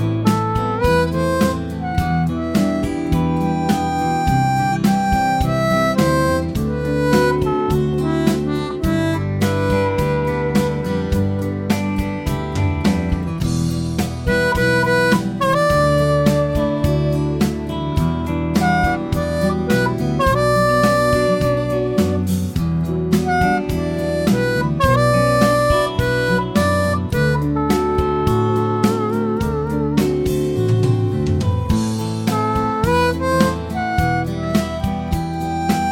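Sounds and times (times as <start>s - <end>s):
harmonica melody in G: 0.0s - 12.1s, 13.4s - 35.9s.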